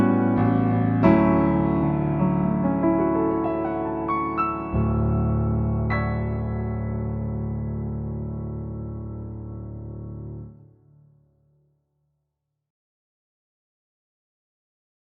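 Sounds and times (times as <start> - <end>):
piano cover: 0.0 - 11.0.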